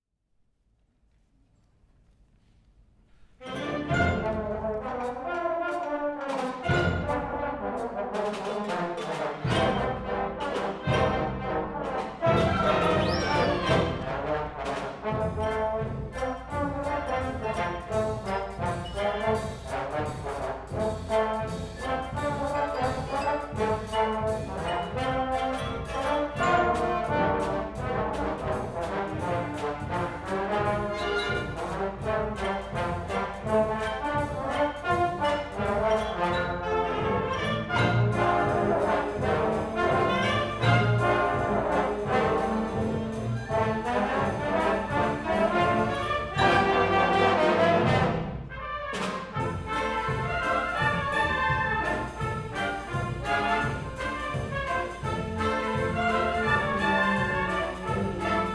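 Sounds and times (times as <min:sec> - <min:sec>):
trombone rag: 0:03.4 - 0:58.5.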